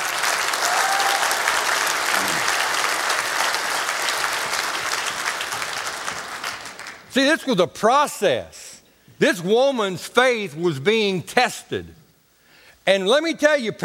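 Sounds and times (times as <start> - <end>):
audience applause: 0.0 - 7.1
speech: 7.2 - 8.6, 9.2 - 12.0, 12.8 - 13.8.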